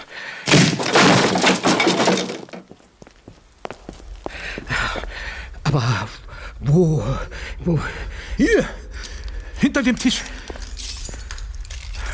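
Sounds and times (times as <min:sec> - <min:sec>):
door being broken down: 0:00.5 - 0:02.7
glass breaking: 0:00.5 - 0:02.7
speech: 0:05.7 - 0:08.8, 0:09.7 - 0:10.3.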